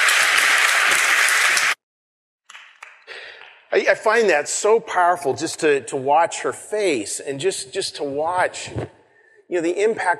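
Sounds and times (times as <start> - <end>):
crowd applause: 0.0 - 1.8
speech: 3.8 - 10.1.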